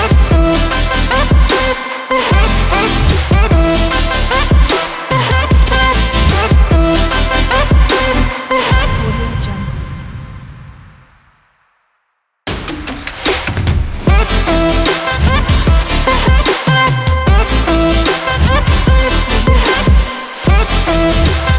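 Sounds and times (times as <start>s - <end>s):
future bass music: 0.0s - 9.2s, 14.0s - 21.5s.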